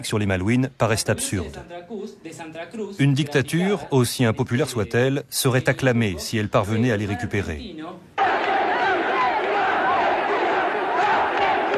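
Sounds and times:
speech: 0:00.0 - 0:08.2
crowds in Buenos Aires shouting and chanting at news of the Falklands landing: 0:08.2 - 0:11.7.

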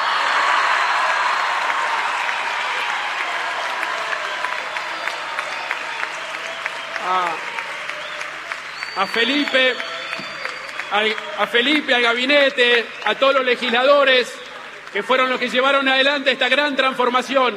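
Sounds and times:
audience applause: 0:00.0 - 0:16.6
speech: 0:09.0 - 0:09.9, 0:10.9 - 0:17.5.

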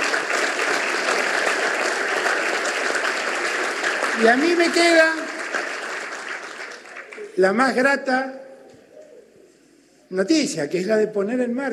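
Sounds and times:
crowd applauding: 0:00.0 - 0:07.5
speech: 0:04.2 - 0:05.2, 0:07.4 - 0:08.4, 0:10.1 - 0:11.7.

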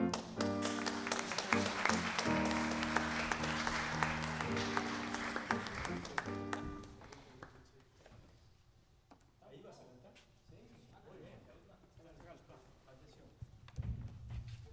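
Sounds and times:
audience applause: 0:00.0 - 0:07.7.

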